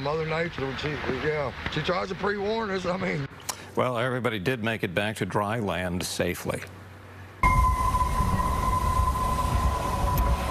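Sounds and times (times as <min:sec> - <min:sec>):
speech: 0:00.0 - 0:06.8
gale-force wind whistling through the Golden Gate Bridge: 0:07.4 - 0:10.5.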